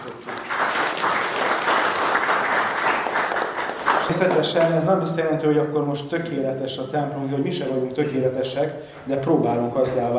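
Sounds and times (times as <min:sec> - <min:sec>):
audience applauding: 0:00.0 - 0:04.9
speech: 0:04.1 - 0:10.1.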